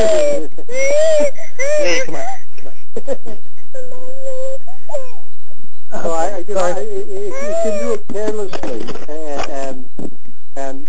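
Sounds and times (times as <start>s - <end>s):
child crying: 0.0s - 2.4s, 3.7s - 5.3s, 7.2s - 8.1s
laughter: 2.0s - 3.7s
speech: 6.6s - 10.8s.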